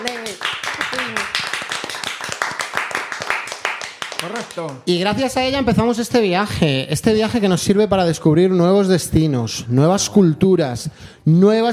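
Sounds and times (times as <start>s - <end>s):
applause: 0.0s - 4.9s
speech: 4.2s - 11.7s.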